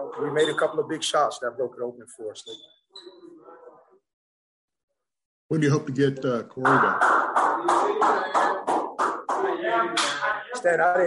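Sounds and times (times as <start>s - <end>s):
faint murmur of voices: 0.0s - 4.1s, 6.3s - 11.0s
speech: 0.1s - 3.1s, 5.5s - 8.4s, 9.8s - 11.0s
crowd clapping in rhythm: 6.6s - 10.4s.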